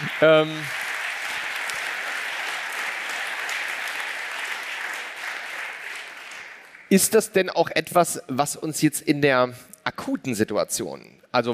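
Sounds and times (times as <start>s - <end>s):
light applause: 0.0s - 7.0s
speech: 0.2s - 0.8s, 6.9s - 11.5s.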